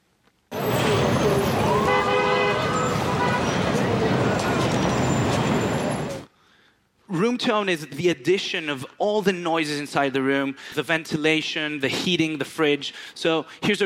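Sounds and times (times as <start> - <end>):
Times Square street ambience in New York: 0.5 - 6.3
car horns in Times Square: 0.5 - 6.3
speech: 7.4 - 13.8.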